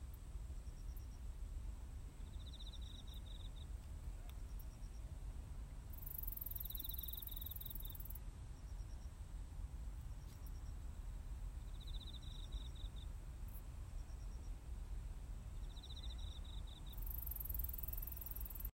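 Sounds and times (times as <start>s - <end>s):
low background rumble: 0.0s - 18.7s
cricket trilling: 0.6s - 1.3s, 2.2s - 5.1s, 5.9s - 9.1s, 10.0s - 14.6s, 15.5s - 18.7s.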